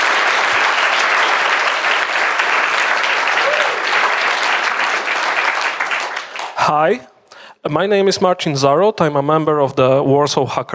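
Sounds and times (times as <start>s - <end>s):
audience applause: 0.0s - 7.0s
speech: 6.7s - 10.7s.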